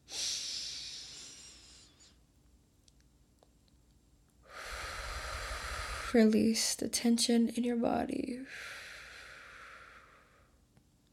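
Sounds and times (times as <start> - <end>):
deep airy hissing breath during a meditation for pain: 0.1 - 2.2, 4.4 - 6.3, 8.4 - 10.6
speech: 6.1 - 8.8.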